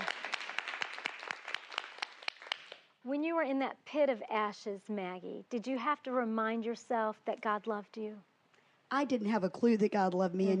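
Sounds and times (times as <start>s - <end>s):
audience clapping: 0.0s - 2.9s
speech: 3.0s - 8.3s, 8.9s - 10.5s.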